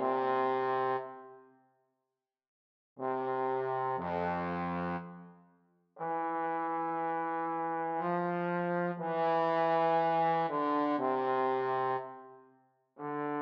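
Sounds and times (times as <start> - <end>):
adagio trombone duet: 0.0 - 1.0, 3.0 - 5.1, 6.0 - 12.0, 13.0 - 13.4.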